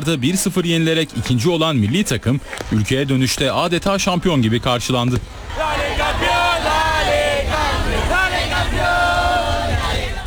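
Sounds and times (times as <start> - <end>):
speech: 0.0 - 6.3
crowd of fans cheering and chanting: 5.2 - 10.2.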